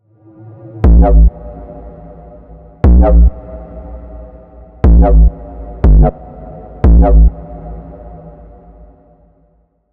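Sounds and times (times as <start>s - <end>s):
neuro bass womp: 0.8s - 1.3s, 2.8s - 3.4s, 4.8s - 6.2s, 6.8s - 7.3s.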